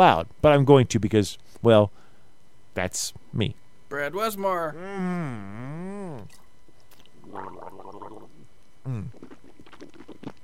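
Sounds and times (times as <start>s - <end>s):
speech: 0.0s - 2.0s, 2.8s - 6.4s, 7.3s - 8.1s
sipping and swallowing water: 6.2s - 10.4s.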